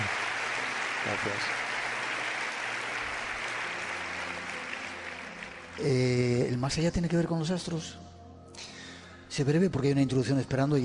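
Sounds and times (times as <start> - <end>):
audience applause: 0.0 - 6.4
speech: 1.0 - 1.7, 5.8 - 8.1, 9.4 - 10.8.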